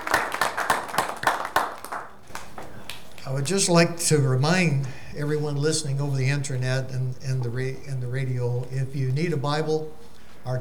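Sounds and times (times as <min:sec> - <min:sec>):
audience applause for choir: 0:00.0 - 0:03.0
speech: 0:03.3 - 0:10.5.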